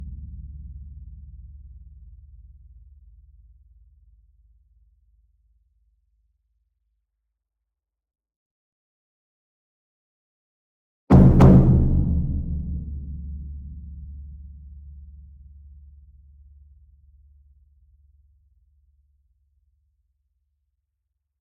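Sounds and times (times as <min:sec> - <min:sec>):
large double concert bass drum in an ensemble: 0:11.1 - 0:14.5.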